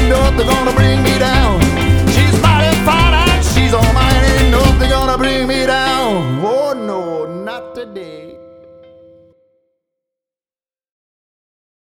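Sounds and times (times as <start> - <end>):
swing and jazz jive music: 0.0 - 6.7.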